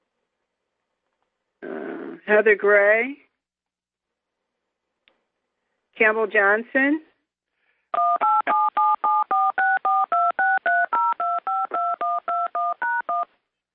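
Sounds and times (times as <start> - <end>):
speech: 2.3 - 3.2, 6.0 - 7.1
touch-tone telephone keypad dialing beeps: 8.0 - 13.3.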